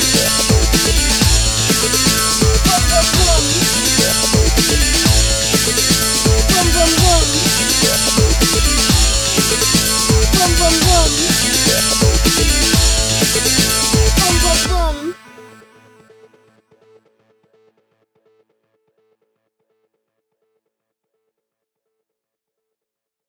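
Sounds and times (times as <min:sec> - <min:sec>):
breakbeat drums: 0:00.0 - 0:15.1.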